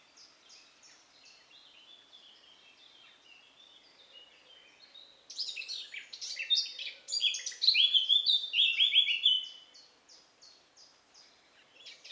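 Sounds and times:
Eurasian blackcap song: 0.0 - 12.1.

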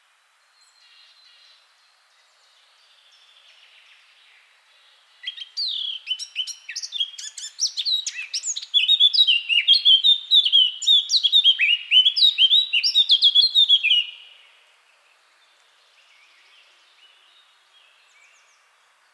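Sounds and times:
Eurasian blackcap singing: 5.2 - 14.2.

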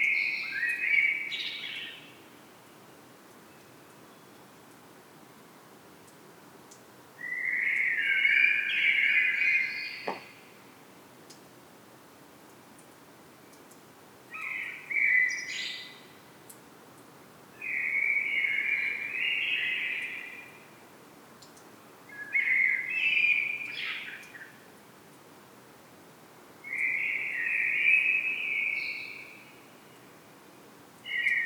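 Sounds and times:
common blackbird song: 0.0 - 4.6, 7.2 - 10.4, 14.3 - 16.2, 17.6 - 20.6, 22.1 - 24.6, 26.6 - 30.1, 31.0 - 31.4
faint clicks: 21.4 - 21.7.

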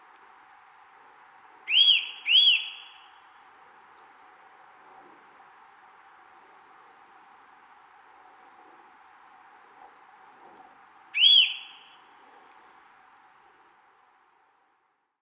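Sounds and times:
Eurasian nuthatch calling with ringing whistles: 1.7 - 3.1, 11.2 - 12.0.

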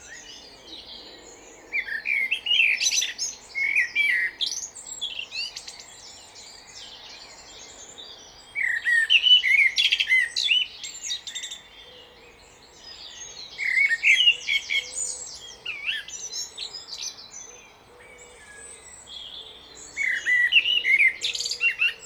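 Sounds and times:
common blackbird song: 0.0 - 22.0.

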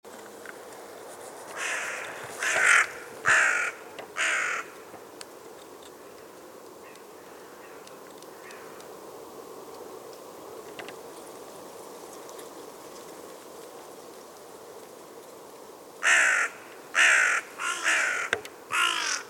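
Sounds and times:
carrion crow Corvus corone cawing: 1.5 - 4.8, 16.0 - 19.2.

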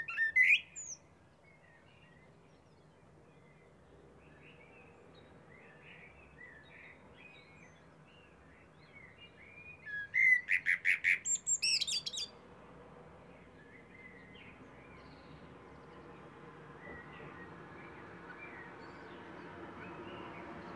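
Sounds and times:
Eurasian blackbird calls: 0.0 - 1.0, 9.9 - 12.3.

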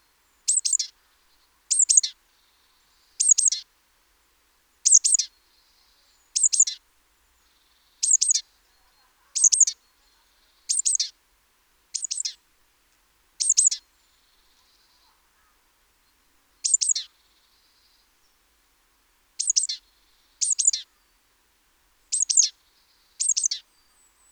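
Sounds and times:
great tit calling: 0.5 - 0.9, 1.7 - 2.1, 3.2 - 3.6, 4.8 - 5.3, 6.4 - 6.8, 8.0 - 8.4, 9.4 - 9.8, 10.6 - 11.1, 12.0 - 12.4, 13.4 - 13.8, 16.6 - 17.1, 19.4 - 19.8, 20.4 - 20.8, 22.1 - 22.5, 23.2 - 23.6.

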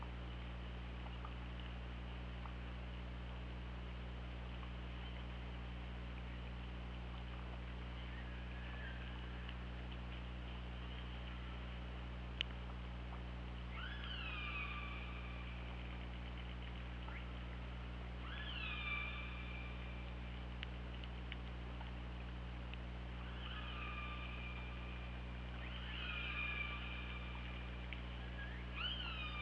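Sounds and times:
constant low hydrophone hum: 0.0 - 29.4
click: 12.4 - 13.2, 20.6 - 21.9
killer whale calls: 13.7 - 15.6, 18.2 - 20.0, 23.2 - 29.4.

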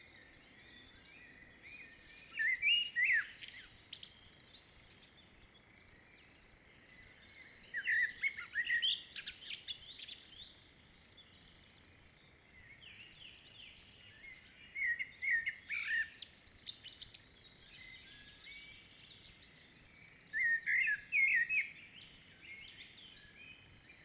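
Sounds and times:
common blackbird song: 0.0 - 24.0.

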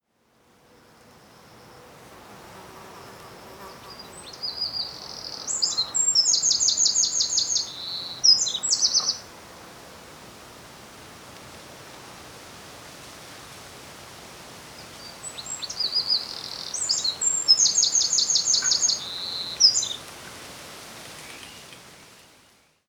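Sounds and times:
background hiss: 0.0 - 22.8
Eurasian wren shrill trilling song: 4.2 - 9.2, 15.3 - 20.0.

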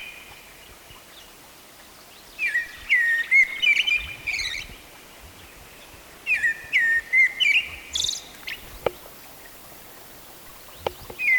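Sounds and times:
Eurasian blackbird singing: 2.4 - 4.8, 6.3 - 11.3.

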